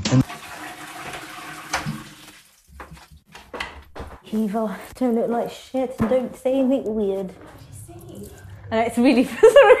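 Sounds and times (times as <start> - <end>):
speech: 0.1 - 0.3, 4.4 - 7.6, 8.2 - 9.7
person urinating into a toilet: 0.1 - 3.1
laughter: 9.1 - 9.7.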